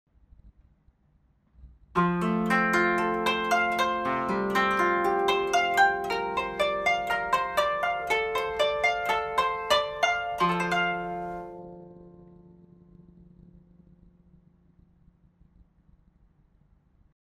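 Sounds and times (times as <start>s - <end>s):
koto: 2.0s - 13.7s.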